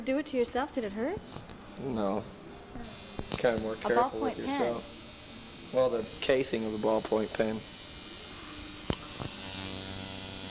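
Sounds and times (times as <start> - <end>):
speech: 0.0 - 5.0, 5.7 - 7.8
tattoo machine buzzing as its needle traces an outline: 2.8 - 10.4.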